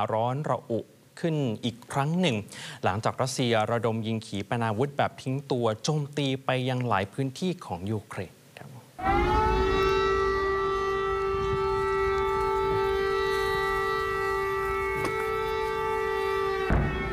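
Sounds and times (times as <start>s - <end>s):
speech: 0.0s - 8.4s, 9.0s - 9.4s
air raid warning siren wailing: 9.0s - 17.1s.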